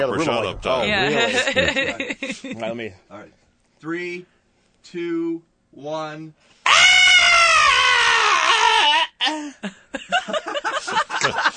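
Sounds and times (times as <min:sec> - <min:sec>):
speech: 0:00.0 - 0:07.0, 0:09.2 - 0:11.5
laughter: 0:00.1 - 0:02.6, 0:09.3 - 0:11.5
person screaming: 0:06.7 - 0:09.3.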